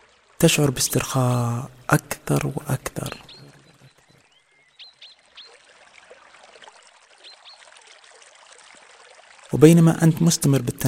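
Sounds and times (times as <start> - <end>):
flowing water trickling and splashing: 0.0 - 10.8
speech: 0.4 - 3.3, 9.5 - 10.8
short high bird chirps: 1.9 - 5.6.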